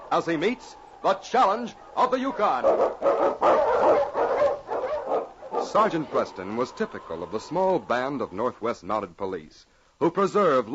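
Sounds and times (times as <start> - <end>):
speech: 0.1 - 4.2, 5.6 - 10.7
husky Eskimo lead dog barking and yelping on a snowy trail in a storm: 1.8 - 6.0.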